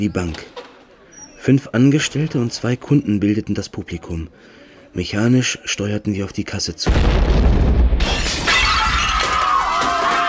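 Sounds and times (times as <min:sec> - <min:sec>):
speech: 0:00.0 - 0:00.6, 0:01.4 - 0:08.2
explosion: 0:06.8 - 0:09.4
glass shattering: 0:08.0 - 0:09.3.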